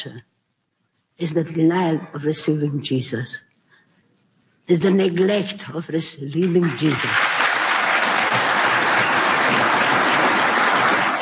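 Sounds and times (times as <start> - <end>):
speech: 0.0 - 0.3, 1.2 - 3.5, 4.7 - 7.4
audience applause: 6.6 - 11.1.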